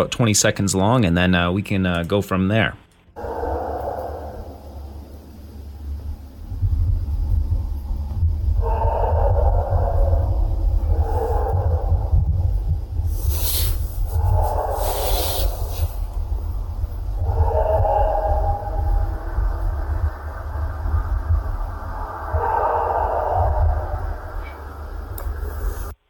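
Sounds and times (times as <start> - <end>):
speech: 0.0 - 3.4
low rumble: 2.9 - 26.0
howls attributed to Bigfoot: 3.2 - 26.0
hissing bursts: 12.6 - 17.2.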